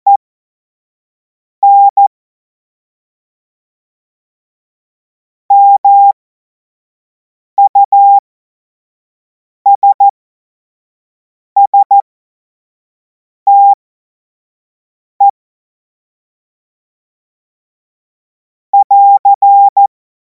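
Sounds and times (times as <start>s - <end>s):
CW Morse code beeps: 1.6s - 2.0s, 5.5s - 6.2s, 7.6s - 8.2s, 9.7s - 10.1s, 11.7s - 12.0s, 13.5s - 13.8s, 18.8s - 19.9s.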